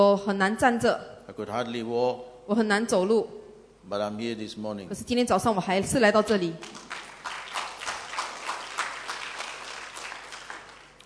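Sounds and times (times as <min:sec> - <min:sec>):
speech: 0:00.0 - 0:06.9
audience applause: 0:06.6 - 0:11.0.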